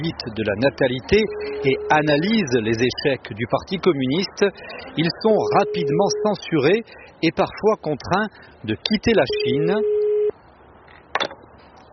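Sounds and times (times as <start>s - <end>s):
speech: 0.0s - 10.0s
electronic line tones: 1.1s - 2.2s, 5.3s - 6.4s
telephone ringing tone on an outgoing call: 1.2s - 2.0s, 5.4s - 6.4s, 9.3s - 10.3s
short beep: 1.3s - 2.0s, 5.4s - 6.4s.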